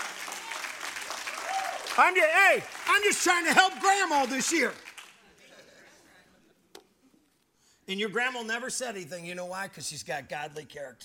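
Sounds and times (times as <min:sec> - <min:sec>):
crowd applauding: 0:00.0 - 0:05.3
speech: 0:02.0 - 0:04.8, 0:07.9 - 0:11.0.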